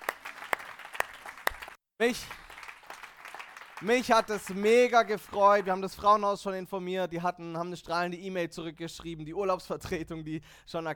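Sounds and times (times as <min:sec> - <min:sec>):
audience applause: 0:00.0 - 0:05.8
speech: 0:02.0 - 0:02.4, 0:03.8 - 0:10.9.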